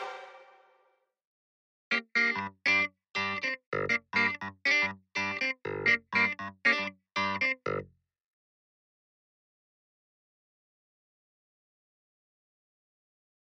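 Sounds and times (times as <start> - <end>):
keyboard: 0.0 - 0.6, 1.9 - 7.9
brass: 0.0 - 0.7.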